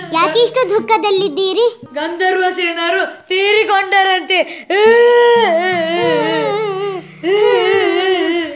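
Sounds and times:
speech: 0.2s - 6.6s, 7.2s - 8.0s
king crying in wailing sobs: 4.9s - 8.5s.

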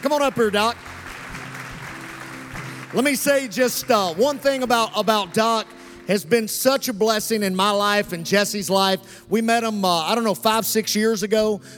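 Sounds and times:
speech: 0.0s - 0.9s, 2.9s - 11.7s
audience applause: 0.0s - 5.9s.

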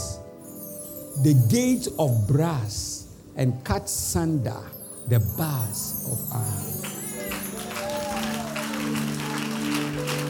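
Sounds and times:
speech: 1.2s - 7.0s
audience clapping: 6.5s - 10.2s.

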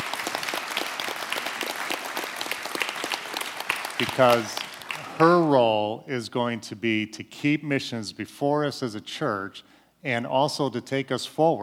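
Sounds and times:
audience applause: 0.0s - 5.6s
speech: 4.0s - 4.6s, 5.2s - 11.6s.

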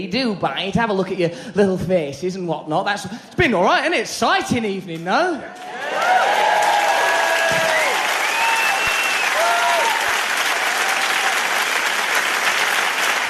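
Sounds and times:
speech: 0.0s - 6.3s
audience applauding: 5.6s - 13.2s.

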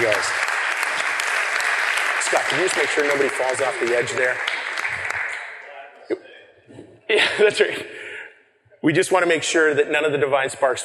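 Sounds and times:
audience applause: 0.0s - 5.7s
speech: 2.5s - 4.6s, 6.1s - 8.0s, 8.8s - 10.8s.

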